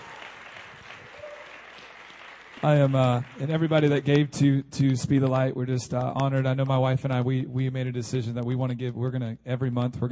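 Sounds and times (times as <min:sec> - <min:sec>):
audience applauding at an evening gathering: 0:00.0 - 0:04.3
speech: 0:02.6 - 0:10.1.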